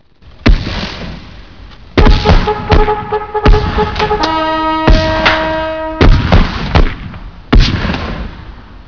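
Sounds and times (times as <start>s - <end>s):
battle music: 2.0s - 6.5s.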